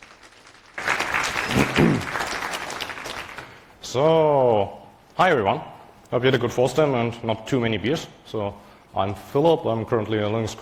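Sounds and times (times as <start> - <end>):
audience applause greeting a conference speaker before a Linux kernel talk in Brussels: 0.0 - 3.8
speech: 1.8 - 2.2, 3.9 - 10.5.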